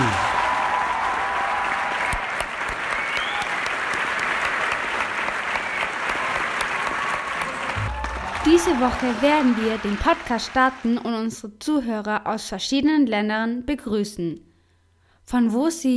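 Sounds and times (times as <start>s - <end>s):
applause: 0.0s - 11.2s
speech: 8.6s - 14.5s, 15.3s - 15.9s.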